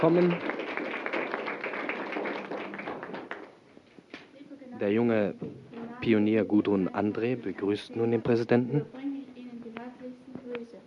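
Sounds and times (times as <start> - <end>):
speech: 0.0 - 0.5, 4.8 - 9.0
children applauding: 0.0 - 3.6.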